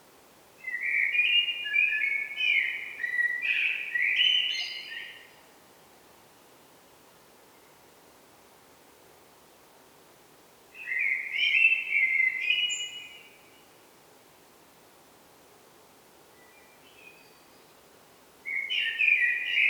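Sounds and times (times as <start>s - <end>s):
Eurasian blackbird Turdus merula song: 0.6s - 5.4s, 10.8s - 13.6s, 16.4s - 17.8s, 18.5s - 19.6s.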